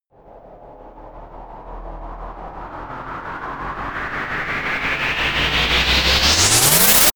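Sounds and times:
power charge effect: 0:02.7 - 0:07.1.

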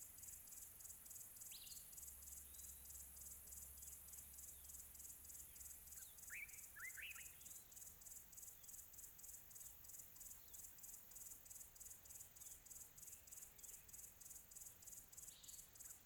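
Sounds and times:
quiet tropical birds: 0:00.0 - 0:16.0.

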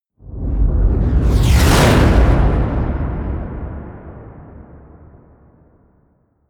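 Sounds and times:
flyby: 0:00.4 - 0:03.4.

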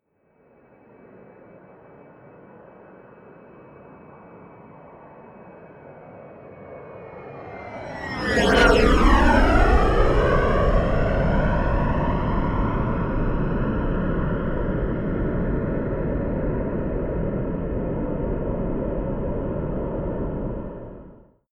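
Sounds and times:
Bombardier private plane flyby: 0:00.8 - 0:21.3.

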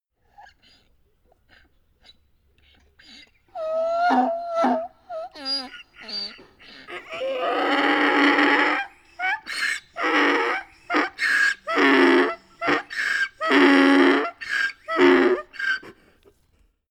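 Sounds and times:
donkey braying: 0:03.5 - 0:16.0.

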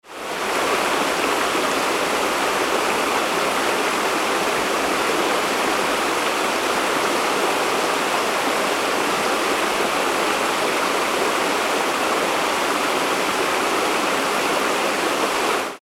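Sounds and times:
waterfall: 0:00.0 - 0:15.8.

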